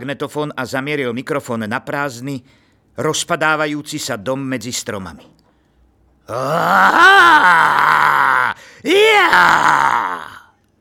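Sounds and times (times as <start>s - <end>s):
speech: 0.0s - 5.4s, 6.3s - 10.3s
person screaming: 6.3s - 10.5s.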